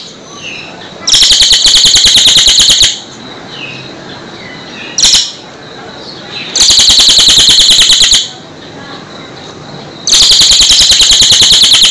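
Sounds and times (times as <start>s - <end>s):
bird singing rapid high chattering trills: 0.0s - 11.8s.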